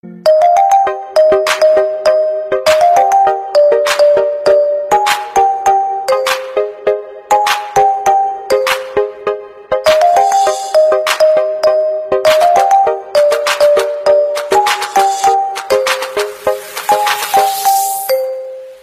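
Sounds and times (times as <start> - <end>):
instrumental ringtone: 0.0 - 18.8.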